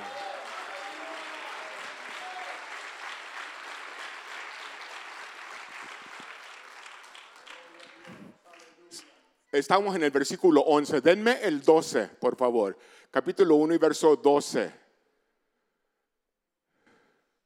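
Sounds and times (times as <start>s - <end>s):
audience applauding: 0.0s - 9.1s
speech: 9.5s - 14.8s.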